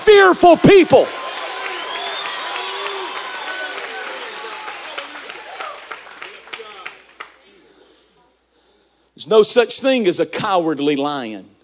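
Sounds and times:
crowd roaring and shouting: 0.0s - 7.0s
speech: 0.1s - 1.2s, 9.2s - 11.6s
scattered claps: 0.4s - 7.6s.

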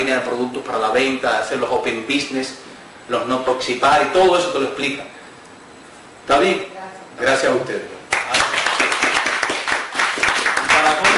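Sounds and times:
speech: 0.1s - 5.2s, 6.3s - 7.9s
audience applause: 8.1s - 11.1s.

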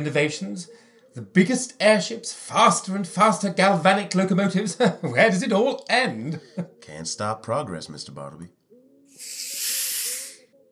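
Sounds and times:
speech: 0.0s - 8.6s
pneumatic chair hissing: 9.2s - 10.4s.

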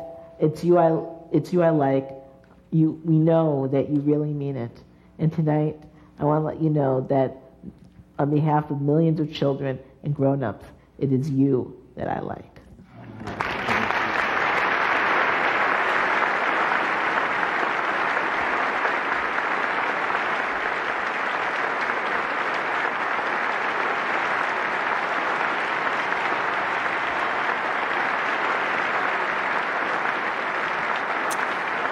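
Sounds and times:
speech: 0.4s - 12.5s
audience applause in played speech recording: 13.1s - 31.8s.

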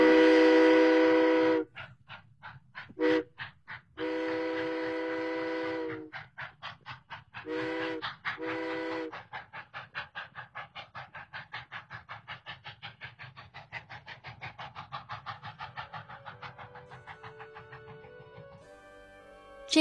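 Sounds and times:
steam train whistle blasts: 0.0s - 1.7s, 3.0s - 3.3s, 4.0s - 6.1s, 7.5s - 9.1s
steam train chugging: 0.0s - 19.7s.

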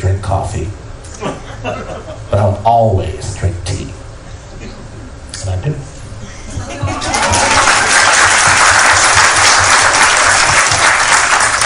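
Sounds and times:
speech: 0.2s - 3.3s
laughter: 1.2s - 2.3s, 6.3s - 8.1s
audience clapping: 7.0s - 11.6s.

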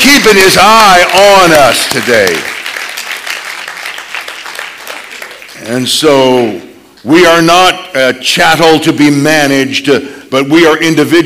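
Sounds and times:
audience hand clapping: 0.0s - 6.6s
speech: 0.2s - 2.5s, 5.6s - 11.2s.

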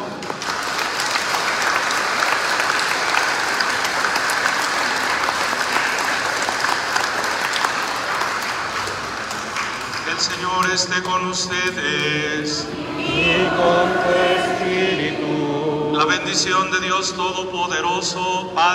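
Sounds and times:
audience applause: 0.0s - 11.2s
speech: 10.8s - 18.7s.

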